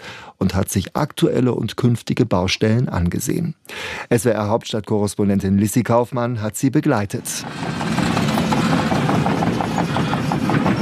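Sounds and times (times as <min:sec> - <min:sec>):
speech: 0:00.4 - 0:07.8
excavators rolling at a primary school in Kernen im Remstal: 0:07.2 - 0:10.8.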